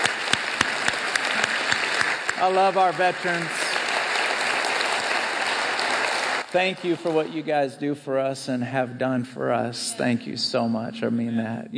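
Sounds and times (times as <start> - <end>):
crowd applause: 0.0 - 7.4
speech: 2.4 - 3.6, 6.5 - 11.7.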